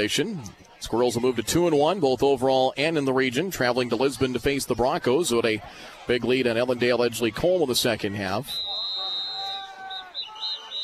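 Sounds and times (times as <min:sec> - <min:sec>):
speech: 0:00.0 - 0:08.8
crowd murmur: 0:00.0 - 0:10.8
referee whistle blasts: 0:08.5 - 0:10.8.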